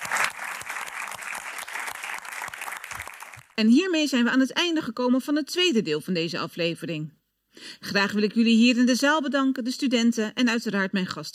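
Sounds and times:
audience applause: 0.0 - 3.6
speech: 3.6 - 11.3.

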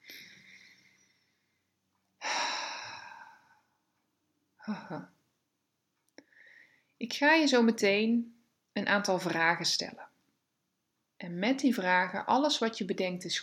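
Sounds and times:
deep slow breathing in and out: 0.0 - 3.8, 6.2 - 7.0
speech: 4.7 - 5.2, 7.0 - 10.1, 11.2 - 13.4.

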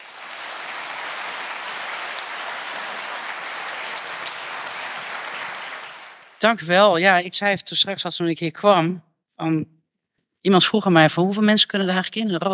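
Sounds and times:
audience applause: 0.0 - 6.6
speech: 6.4 - 9.8, 10.4 - 12.5.

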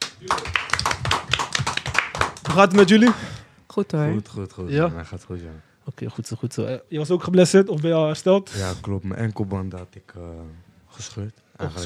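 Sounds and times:
warm applause for the guests: 0.0 - 3.4
speech: 2.6 - 11.8.

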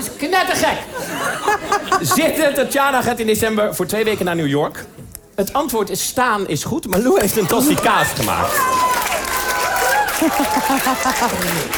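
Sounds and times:
speech: 0.2 - 9.0, 10.2 - 11.7
laughter: 0.7 - 2.7, 9.9 - 11.7
audience applause: 7.8 - 11.7.

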